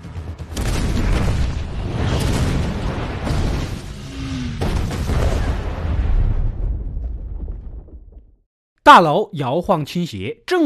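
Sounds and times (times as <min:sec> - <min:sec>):
bomb explosion with crackling debris: 0:00.5 - 0:08.4
speech: 0:08.9 - 0:10.6.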